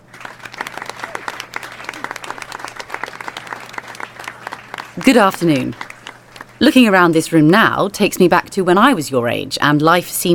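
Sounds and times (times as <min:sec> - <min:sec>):
audience applause: 0:00.0 - 0:06.7
speech: 0:05.0 - 0:05.9, 0:06.6 - 0:10.3.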